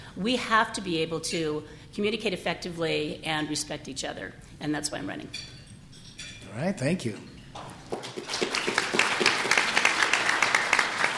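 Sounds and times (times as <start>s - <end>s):
speech: 0.2s - 5.6s, 6.5s - 7.3s
audience applause: 8.0s - 11.1s.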